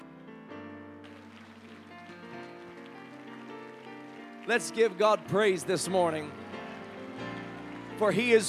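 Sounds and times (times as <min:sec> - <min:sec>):
crowd clapping: 0:01.0 - 0:08.4
speech: 0:04.5 - 0:06.4, 0:08.0 - 0:08.4.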